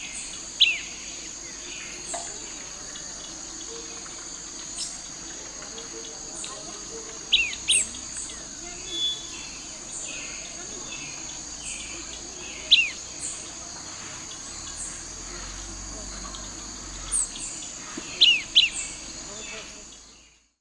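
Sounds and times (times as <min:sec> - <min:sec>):
Red-billed Tyrannulet in Ecuador: 0:06.8 - 0:09.6, 0:10.2 - 0:19.1.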